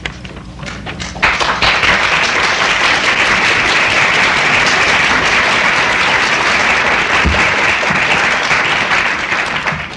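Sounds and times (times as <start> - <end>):
large crowd applauding: 1.2 - 9.9.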